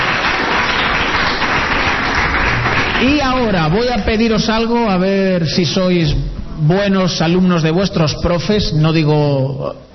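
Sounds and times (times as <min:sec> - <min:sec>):
audience applauding a female councillor: 0:00.0 - 0:04.4
speech: 0:03.0 - 0:09.9.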